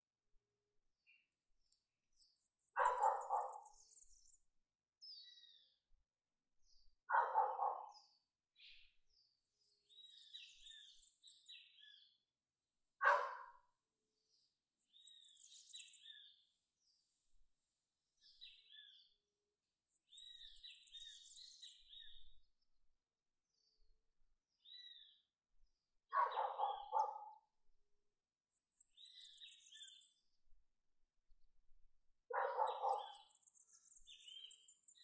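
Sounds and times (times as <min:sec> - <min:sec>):
small birds chirping and twittering: 0:01.1 - 0:04.4, 0:06.6 - 0:12.2, 0:13.0 - 0:13.6, 0:14.2 - 0:17.4, 0:19.9 - 0:22.4, 0:26.1 - 0:27.4, 0:28.5 - 0:30.3, 0:32.3 - 0:35.0
dog barking: 0:02.8 - 0:03.8, 0:07.1 - 0:08.1, 0:13.0 - 0:13.6, 0:26.1 - 0:27.5, 0:32.3 - 0:33.3.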